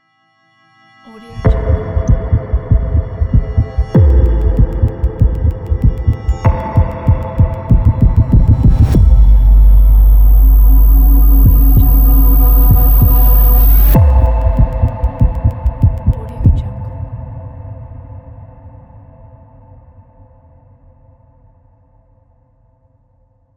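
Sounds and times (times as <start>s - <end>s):
dangerous deep leap logo sound: 1.5s - 16.3s.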